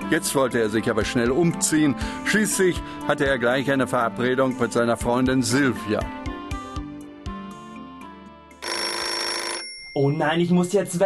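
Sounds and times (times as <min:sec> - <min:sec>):
speech: 0:00.1 - 0:06.3, 0:10.0 - 0:11.0
telephone ringing with melodic tones and jangling bell: 0:08.5 - 0:10.4.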